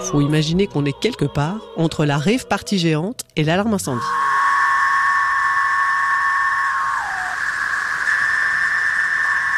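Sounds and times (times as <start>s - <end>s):
speech: 0.0s - 4.2s
chorus of billions of cicadas: 4.1s - 9.5s.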